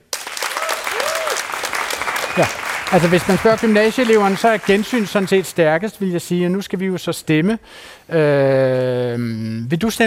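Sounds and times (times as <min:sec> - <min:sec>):
students clapping to vote: 0:00.0 - 0:05.9
speech: 0:02.4 - 0:10.0.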